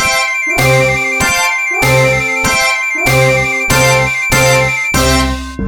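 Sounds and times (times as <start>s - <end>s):
spaceship completion sound: 0.1s - 5.5s.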